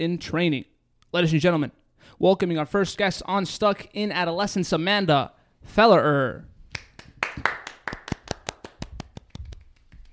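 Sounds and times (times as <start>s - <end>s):
speech: 0.0s - 6.5s
single pair of hands clapping: 6.7s - 10.1s.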